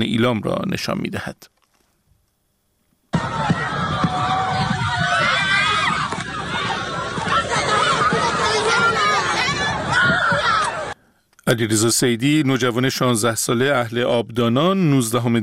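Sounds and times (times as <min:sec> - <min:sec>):
speech: 0:00.0 - 0:01.6, 0:11.5 - 0:15.4
crowd screaming as security forces open fire: 0:03.1 - 0:11.0.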